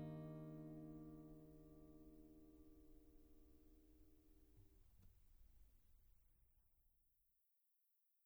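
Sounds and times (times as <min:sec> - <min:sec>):
music recorded with a figure 8 USB microphone: 0:00.0 - 0:04.2.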